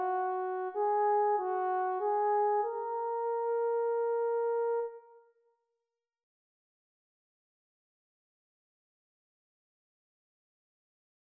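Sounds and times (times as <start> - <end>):
horn: 0.0 - 5.4.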